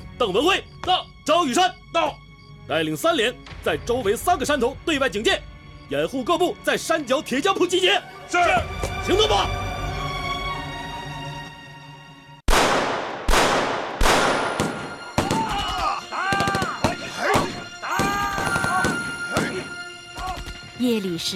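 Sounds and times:
speech: 0.2 - 9.6, 20.8 - 21.3
gunshots: 12.5 - 20.6
people shouting: 15.0 - 20.5.

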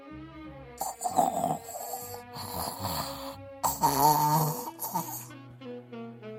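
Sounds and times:
loud snoring: 0.8 - 5.3.

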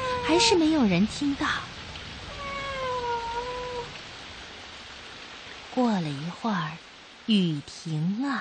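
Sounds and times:
cat meowing: 0.0 - 0.5, 2.3 - 3.9
soft hiss: 0.0 - 8.3
speech: 0.3 - 1.7, 5.8 - 8.3.

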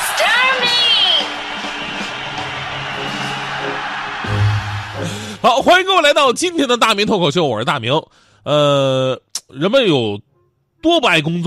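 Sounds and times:
audience applause: 0.0 - 5.8
speech: 5.4 - 11.4.

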